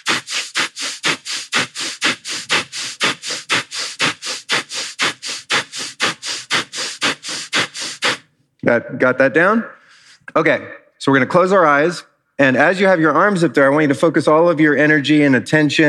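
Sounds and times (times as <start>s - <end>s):
vigorous breathing in and out through the nose: 0.0s - 8.4s, 9.7s - 10.3s
speech: 8.6s - 15.8s.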